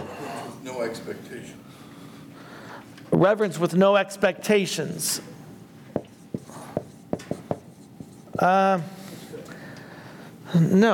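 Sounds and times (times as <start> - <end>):
speech: 0.8 - 1.8, 3.1 - 5.4, 8.4 - 9.0, 10.5 - 10.9
writing words down by hand: 6.0 - 8.5.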